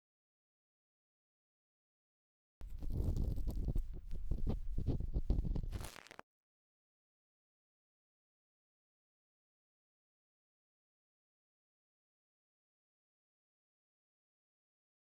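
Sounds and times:
bamboo ear pick at the right ear canal entrance: 2.6 - 6.0.

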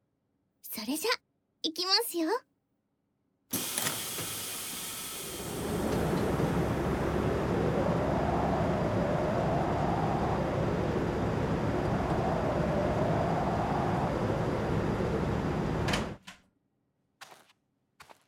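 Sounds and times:
speech: 0.8 - 2.5
air shower strong wind blast: 5.2 - 16.2.

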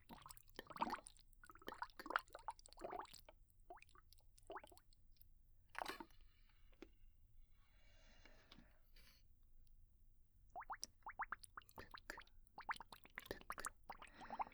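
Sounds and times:
bubbles: 0.0 - 4.8, 10.6 - 14.5.

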